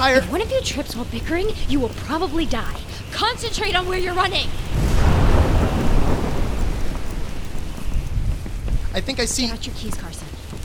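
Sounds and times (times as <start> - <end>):
speech: 0.0 - 5.2, 9.0 - 10.2
deep sustained thunder rumble: 0.2 - 9.4
steady dense rainfall: 3.7 - 10.6.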